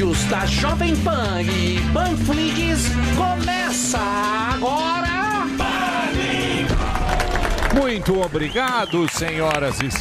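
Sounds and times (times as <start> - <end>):
speech: 0.1 - 6.5, 7.8 - 9.9
voices whooping: 5.6 - 9.1
looped recorded audience applause: 6.7 - 9.9.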